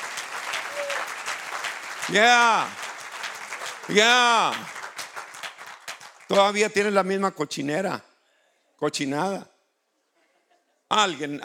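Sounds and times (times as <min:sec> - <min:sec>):
crowd applause: 0:00.0 - 0:06.6
speech: 0:02.1 - 0:02.8, 0:03.9 - 0:04.8, 0:06.3 - 0:08.1, 0:08.8 - 0:09.5, 0:10.9 - 0:11.4.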